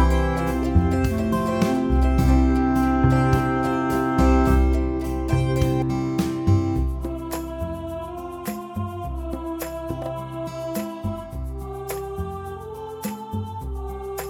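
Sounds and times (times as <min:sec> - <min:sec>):
backing music: 0:00.0 - 0:11.2.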